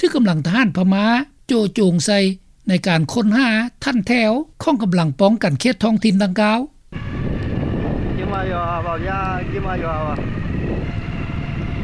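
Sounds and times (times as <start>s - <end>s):
speech: 0.0s - 6.7s, 8.4s - 10.5s
truck driving through town: 6.9s - 11.8s.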